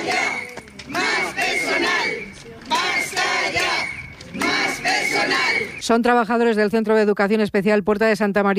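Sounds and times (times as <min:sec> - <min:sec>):
protesters shouting at a demonstration: 0:00.0 - 0:05.8
speech: 0:05.9 - 0:08.5.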